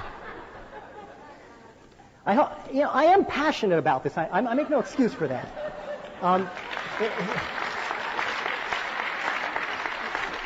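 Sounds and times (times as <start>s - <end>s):
laughter: 0.0s - 1.9s, 4.4s - 8.2s
speech: 2.3s - 5.6s, 6.2s - 7.6s
audience applause: 6.3s - 10.4s.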